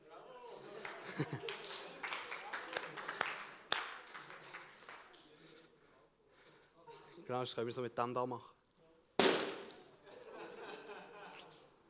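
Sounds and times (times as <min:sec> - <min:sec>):
people laughing and chattering: 0:00.0 - 0:07.3, 0:09.9 - 0:11.8
speech: 0:01.2 - 0:01.6, 0:07.3 - 0:08.6
balloon bursting: 0:09.2 - 0:09.9.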